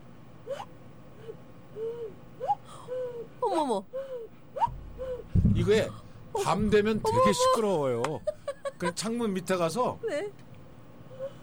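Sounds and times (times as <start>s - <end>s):
person blowing a cuckoo call through cupped hands: 0.5s - 3.3s
speech: 5.6s - 10.4s.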